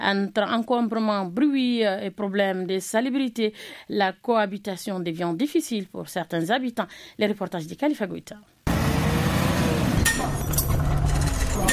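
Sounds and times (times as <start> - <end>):
speech: 0.0 - 8.6
engines roaring in an auto repair garage: 8.7 - 11.7
hammers banging: 8.7 - 11.7
mechanical tools clinking: 10.0 - 11.7.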